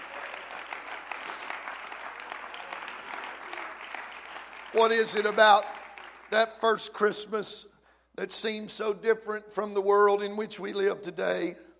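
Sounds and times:
audience clapping hands: 0:00.0 - 0:07.0
speech: 0:04.7 - 0:05.7, 0:06.3 - 0:11.6.

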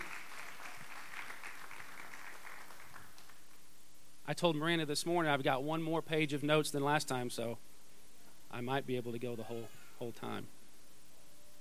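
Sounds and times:
audience hand clapping: 0:00.0 - 0:03.6
speech: 0:04.3 - 0:07.7, 0:08.5 - 0:10.6.

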